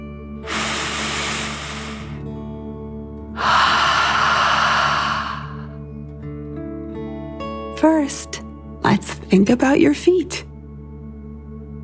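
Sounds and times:
deep breath in and out: 0.4 - 2.3, 3.4 - 5.8
speech: 7.8 - 10.5.

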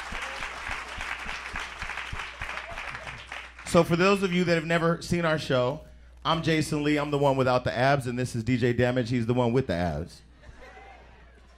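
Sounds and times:
live audience applause: 0.0 - 3.8
speech: 3.7 - 10.3
laughter: 10.3 - 11.5.

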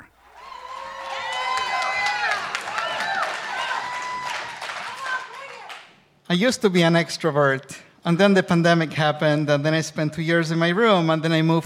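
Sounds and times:
crowd applauding: 0.0 - 5.9
voices whooping and cheering: 0.3 - 5.9
speech: 6.3 - 11.6.

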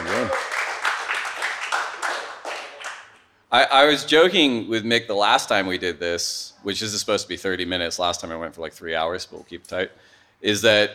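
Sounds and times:
round of applause: 0.0 - 3.3
speech: 3.5 - 10.9.

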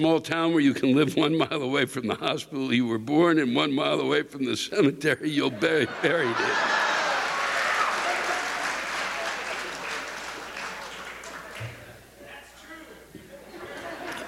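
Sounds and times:
speech: 0.0 - 6.8
laughter: 5.4 - 11.8, 13.2 - 14.2
rousing applause: 6.1 - 11.9.

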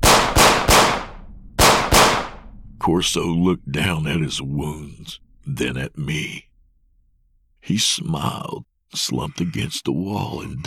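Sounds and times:
pistol shots fired in a corridor: 0.0 - 2.6
speech: 2.8 - 6.5, 7.6 - 10.6.

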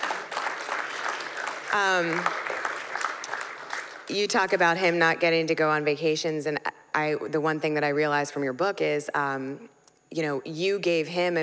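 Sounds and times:
audience clapping: 0.0 - 4.3
speech: 1.7 - 2.5, 4.1 - 11.4.

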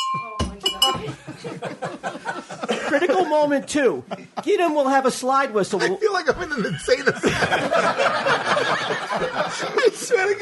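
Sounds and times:
small bell ringing: 0.0 - 1.1
several voices in excited talk and laughter: 0.9 - 10.4
speech: 2.9 - 10.4.

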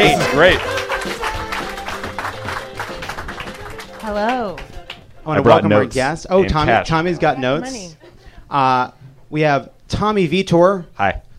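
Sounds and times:
audience applause at a live show: 0.0 - 5.1
speech: 0.1 - 1.2, 5.2 - 11.2
laughter: 6.4 - 8.3.

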